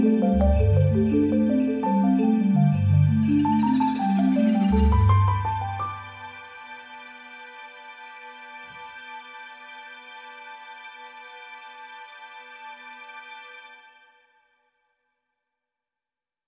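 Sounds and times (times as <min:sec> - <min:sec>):
kalimba in afro world music: 0:00.2 - 0:05.8.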